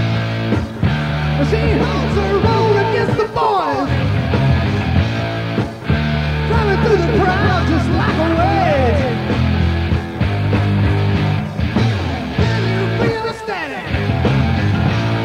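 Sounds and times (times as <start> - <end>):
heavy metal noise: 0.0 - 15.2.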